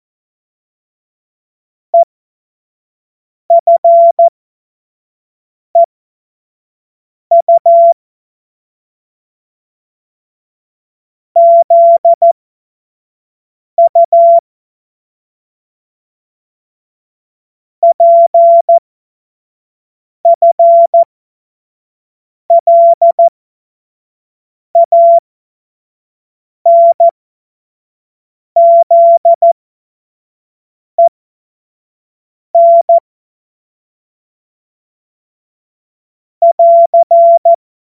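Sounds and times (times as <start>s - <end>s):
CW Morse code beeps: 3.5s - 4.3s, 7.3s - 8.0s, 11.4s - 12.3s, 13.8s - 14.4s, 17.8s - 18.8s, 20.3s - 21.0s, 22.5s - 23.3s, 24.8s - 25.2s, 26.7s - 27.1s, 28.6s - 29.6s, 32.6s - 33.0s, 36.4s - 37.6s.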